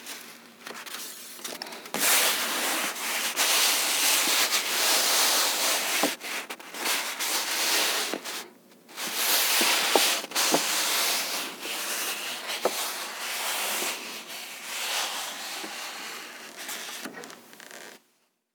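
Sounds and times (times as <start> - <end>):
paper rubbing: 2.0 - 17.9.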